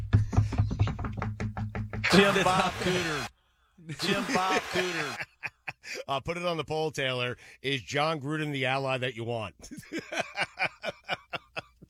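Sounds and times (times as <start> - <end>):
knocking: 0.0 - 2.1
laughter: 2.0 - 6.1, 9.6 - 11.8
speech: 2.1 - 3.3, 3.9 - 5.3, 5.9 - 10.4.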